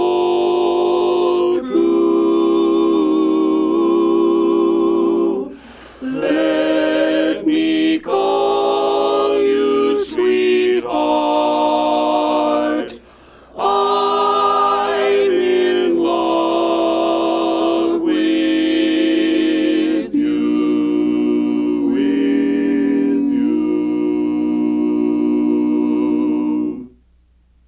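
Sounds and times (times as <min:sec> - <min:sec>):
tenor singing: 0:00.0 - 0:27.0.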